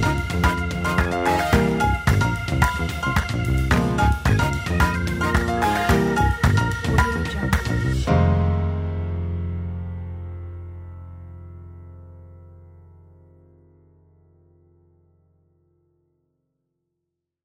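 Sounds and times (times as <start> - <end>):
upbeat jazz: 0.0 - 9.8.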